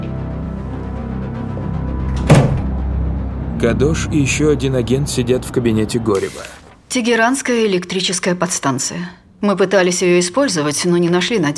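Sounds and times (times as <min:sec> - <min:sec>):
steady low hum: 0:00.5 - 0:06.0
door closing thud with brief rattle: 0:01.6 - 0:02.8
speech: 0:03.6 - 0:11.5.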